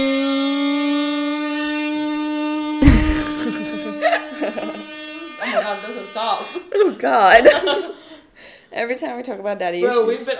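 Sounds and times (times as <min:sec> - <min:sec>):
air horn sound effect: 0:00.0 - 0:06.9
laughter: 0:02.8 - 0:08.2
speech: 0:05.5 - 0:08.0, 0:08.7 - 0:10.3.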